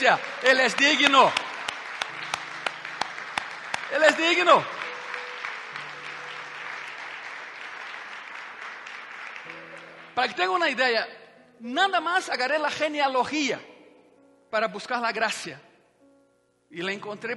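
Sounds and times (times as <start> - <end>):
speech: 0.0 - 1.5, 3.9 - 4.8, 10.2 - 13.7, 14.5 - 15.7, 16.7 - 17.3
audience applause: 0.0 - 10.4.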